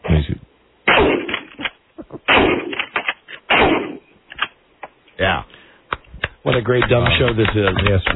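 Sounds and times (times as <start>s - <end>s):
shotgun blasts from a gun being loaded and fired: 0.9s - 4.1s
speech: 5.2s - 5.6s, 6.4s - 8.1s.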